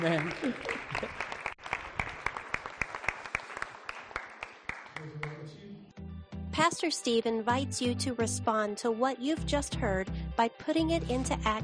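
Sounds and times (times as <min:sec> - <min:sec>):
speech: 0:00.0 - 0:01.2, 0:06.6 - 0:11.6
audience applauding: 0:00.0 - 0:05.7.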